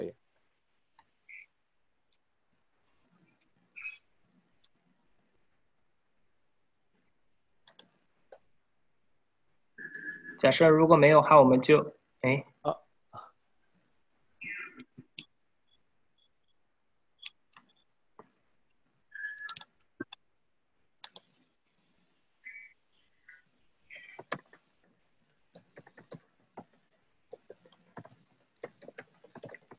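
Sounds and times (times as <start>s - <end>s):
typing on a keyboard: 7.6s - 8.0s, 19.2s - 20.2s, 21.0s - 21.4s, 23.9s - 29.7s
speech: 10.4s - 12.8s.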